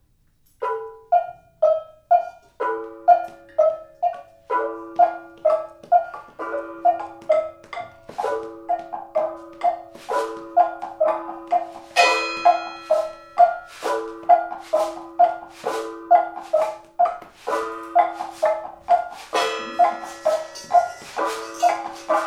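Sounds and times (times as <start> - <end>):
jam session: 0.6 - 22.2.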